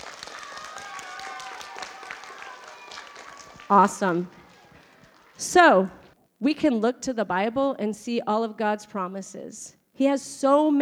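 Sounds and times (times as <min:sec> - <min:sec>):
children's applause: 0:00.0 - 0:06.1
speech: 0:03.7 - 0:04.4, 0:05.4 - 0:10.7.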